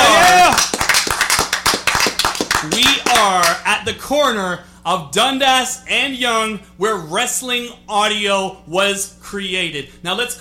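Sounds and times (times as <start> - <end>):
person whooping: 0.0 - 0.8
handful of people clapping in a studio: 0.0 - 3.6
speech: 2.6 - 10.3.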